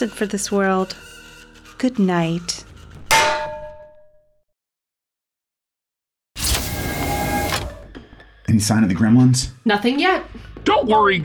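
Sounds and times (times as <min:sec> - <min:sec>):
speech: 0:00.0 - 0:01.2, 0:01.8 - 0:03.4, 0:08.5 - 0:11.2
frying pan striking a head: 0:03.1 - 0:04.0
mechanical whirring: 0:06.4 - 0:07.9.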